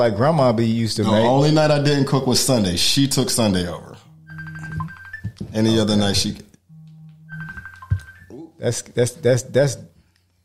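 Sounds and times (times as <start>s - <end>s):
speech: 0.0s - 3.9s, 5.6s - 6.5s, 8.6s - 9.9s
mobile phone ringing: 1.1s - 1.7s, 4.1s - 8.3s.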